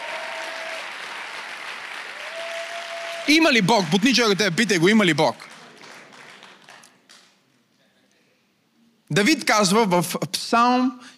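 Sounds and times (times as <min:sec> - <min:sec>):
audience applause: 0:00.0 - 0:07.4
speech: 0:03.3 - 0:05.5, 0:09.1 - 0:11.1.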